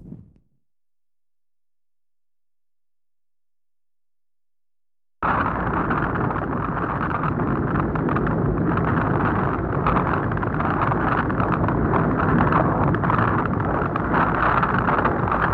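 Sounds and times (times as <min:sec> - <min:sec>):
rain in a storm: 0:05.2 - 0:15.5
wind in a storm: 0:05.2 - 0:15.5.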